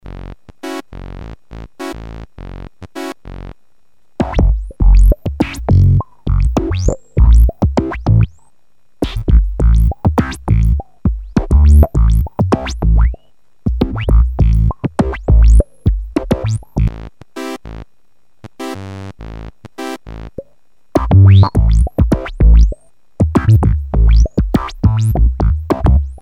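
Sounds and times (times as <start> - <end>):
funk music: 4.2 - 8.3, 9.0 - 16.9, 21.0 - 26.2.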